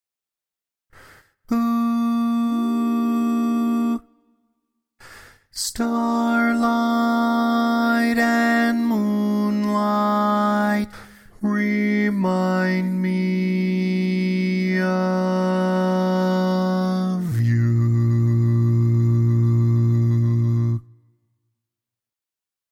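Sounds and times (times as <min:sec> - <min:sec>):
barbershop bass voice singing: 0:01.5 - 0:04.0, 0:05.6 - 0:20.9.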